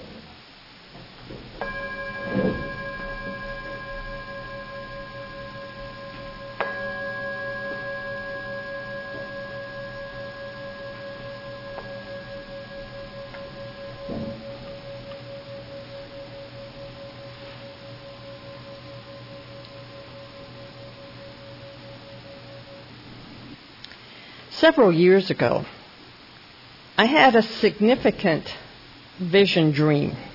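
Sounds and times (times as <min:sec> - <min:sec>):
gong struck: 0:01.6 - 0:22.9
speech: 0:24.6 - 0:25.8, 0:27.0 - 0:28.6, 0:29.2 - 0:30.3.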